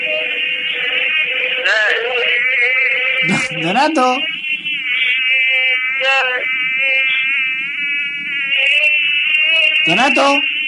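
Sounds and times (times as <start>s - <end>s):
mosquitoes buzzing: 0.0s - 10.6s
speech: 3.5s - 4.3s, 9.9s - 10.5s.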